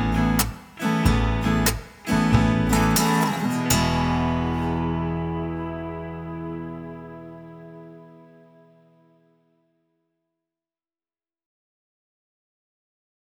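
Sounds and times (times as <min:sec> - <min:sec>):
alien instrumental music: 0:00.0 - 0:09.2.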